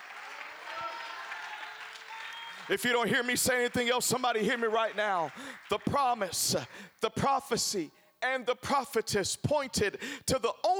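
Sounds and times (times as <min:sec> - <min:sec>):
audience clapping hands: 0:00.0 - 0:06.9
speech: 0:02.7 - 0:10.7.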